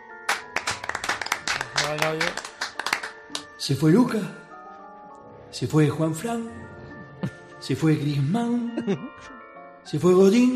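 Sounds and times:
group clapping in a dressing room: 0.3s - 3.6s
speech: 1.9s - 2.5s, 3.6s - 4.4s, 5.5s - 10.5s.

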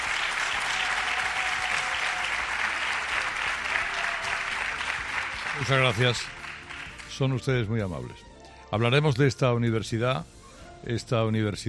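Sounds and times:
audience applauding in a lecture hall: 0.0s - 7.4s
speech: 5.6s - 6.4s, 7.2s - 11.6s.

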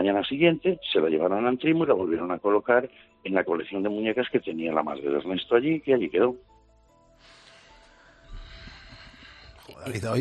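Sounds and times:
speech: 0.0s - 6.5s, 9.8s - 10.2s
breathing on the radio: 7.2s - 9.8s.

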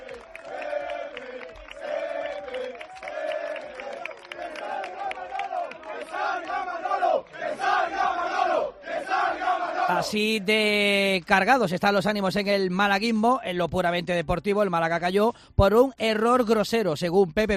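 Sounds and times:
football fans jeering angrily: 0.0s - 10.6s
football fans chanting and shouting: 0.0s - 10.7s
speech: 9.9s - 17.5s.

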